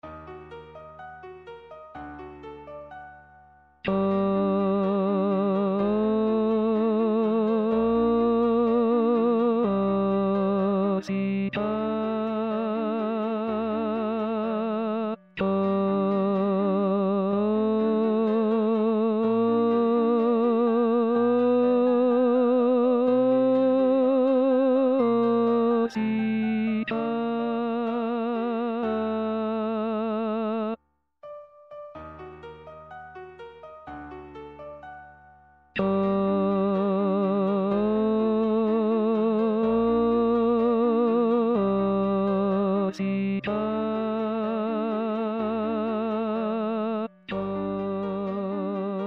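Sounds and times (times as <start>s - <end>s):
tenor singing: 3.8s - 30.8s, 35.8s - 49.0s.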